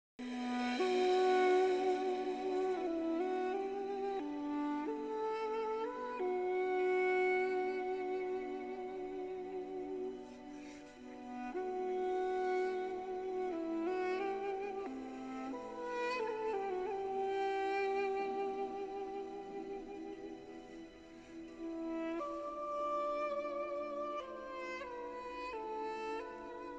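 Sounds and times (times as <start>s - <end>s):
flute: 0.0s - 26.7s.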